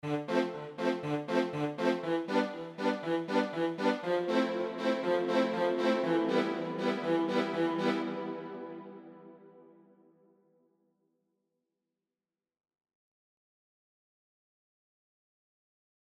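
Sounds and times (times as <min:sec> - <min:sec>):
strings with Lexicon hall reverb: 0:00.0 - 0:09.7.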